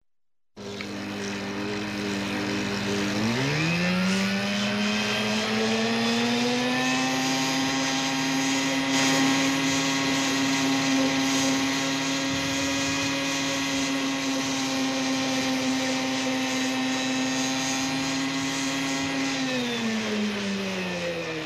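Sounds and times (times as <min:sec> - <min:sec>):
18 hp motorboat at full throttle: 0:00.6 - 0:21.3.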